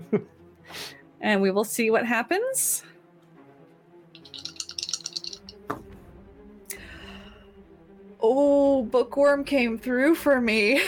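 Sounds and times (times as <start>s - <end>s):
speech: 0.1s - 2.9s, 8.2s - 10.8s
dice rattling on a table: 4.2s - 5.6s.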